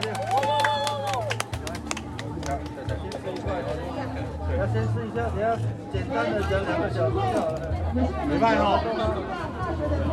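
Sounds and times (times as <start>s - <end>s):
audience applause: 0.0s - 3.4s
speech: 4.7s - 10.1s.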